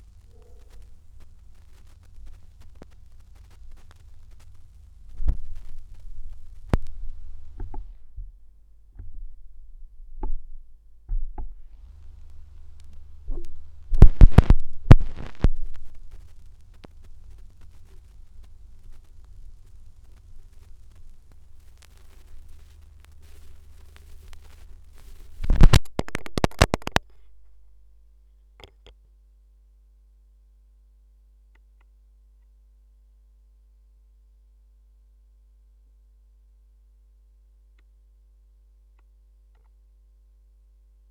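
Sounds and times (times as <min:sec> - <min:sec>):
vinyl record noise: 0:00.0 - 0:08.3, 0:11.4 - 0:28.3.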